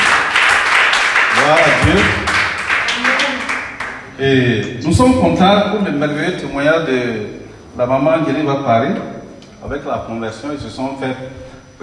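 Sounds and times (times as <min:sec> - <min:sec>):
church congregation applauding during a service: 0:00.0 - 0:04.2
speech: 0:01.5 - 0:02.3, 0:04.2 - 0:11.8.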